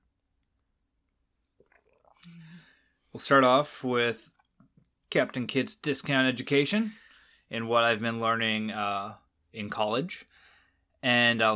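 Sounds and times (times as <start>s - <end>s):
person sipping coffee: 1.4s - 2.8s
speech: 1.6s - 4.3s, 5.1s - 10.3s, 11.0s - 11.5s.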